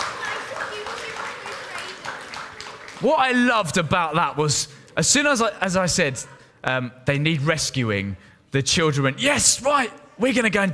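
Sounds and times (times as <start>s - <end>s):
applause for children after a reindeer rescue activity: 0.0s - 3.8s
speech: 3.0s - 10.7s.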